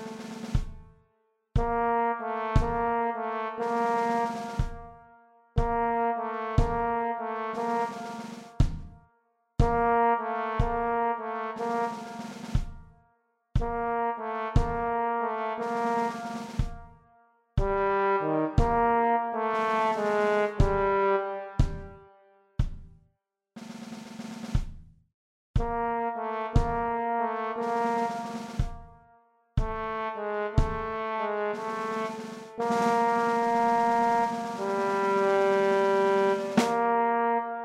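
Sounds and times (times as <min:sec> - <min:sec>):
trombone: 0:00.0 - 0:00.7, 0:01.6 - 0:05.0, 0:05.6 - 0:08.8, 0:09.6 - 0:12.8, 0:13.6 - 0:17.0, 0:17.6 - 0:22.0, 0:25.6 - 0:29.0, 0:29.6 - 0:37.6.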